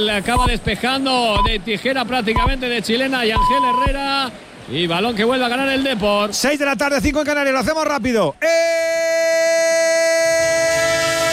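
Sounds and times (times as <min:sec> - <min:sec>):
speech: 0:00.0 - 0:09.4
train horn sound effect in a radio sports segment jingle: 0:10.4 - 0:11.3.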